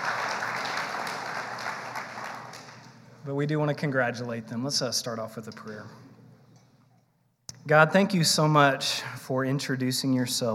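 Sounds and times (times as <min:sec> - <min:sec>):
round of applause: 0:00.0 - 0:03.0
speech: 0:03.2 - 0:06.0, 0:07.7 - 0:10.5.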